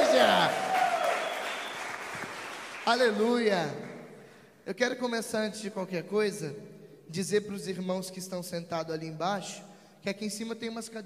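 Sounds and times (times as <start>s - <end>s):
audience applause: 0.0s - 3.2s
speech: 2.9s - 3.9s, 4.7s - 11.0s.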